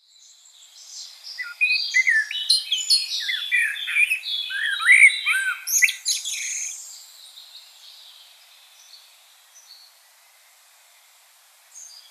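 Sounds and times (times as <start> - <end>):
common blackbird fluted whistling song: 1.0 - 6.8.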